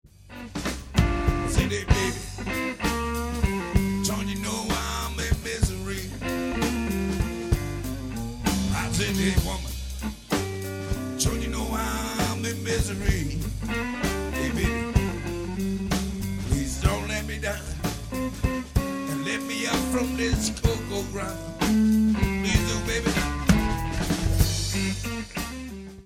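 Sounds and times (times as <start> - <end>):
blues music: 0.1 - 26.0.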